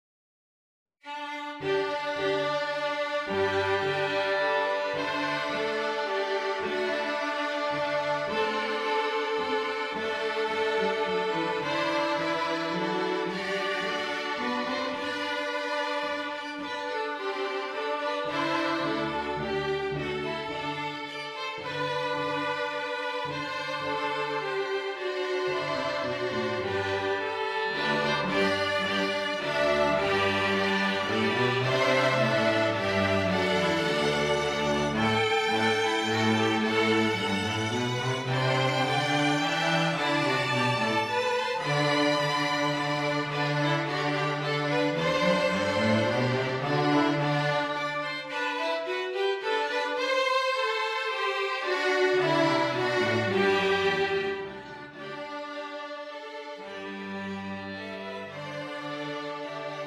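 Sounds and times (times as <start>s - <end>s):
cello: 1.0s - 59.8s.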